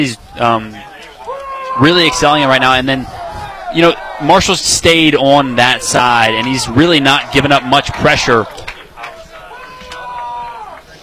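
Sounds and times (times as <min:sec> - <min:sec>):
speech: 0:00.0 - 0:00.9, 0:01.8 - 0:08.6
crowd roar: 0:00.0 - 0:11.0
large crowd chanting: 0:02.0 - 0:10.8.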